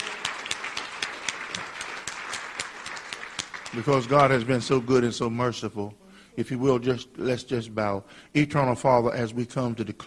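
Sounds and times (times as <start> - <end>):
audience hand clapping: 0.0 - 5.0
speech: 3.7 - 10.0.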